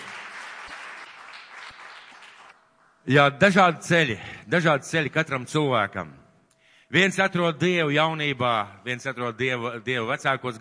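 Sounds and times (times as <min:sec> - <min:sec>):
audience applause: 0:00.0 - 0:02.5
speech: 0:03.0 - 0:06.2, 0:06.9 - 0:10.5.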